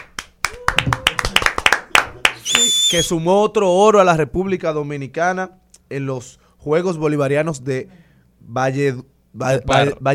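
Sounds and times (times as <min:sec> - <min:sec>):
applause: 0:00.0 - 0:02.9
speech: 0:02.9 - 0:10.1.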